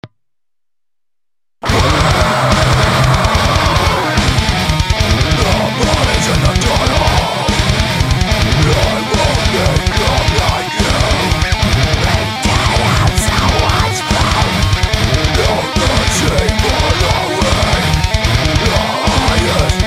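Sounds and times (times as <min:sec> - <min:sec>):
neoclassical shred metal full mix: 0:01.6 - 0:19.8.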